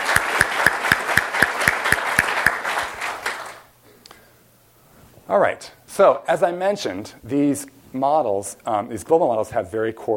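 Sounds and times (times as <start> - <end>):
audience applause: 0.0 - 3.7
speech: 5.3 - 10.1.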